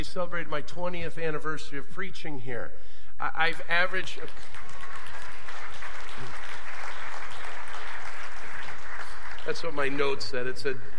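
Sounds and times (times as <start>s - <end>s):
speech: 0.1s - 4.8s, 9.5s - 10.9s
audience applause: 4.2s - 10.5s.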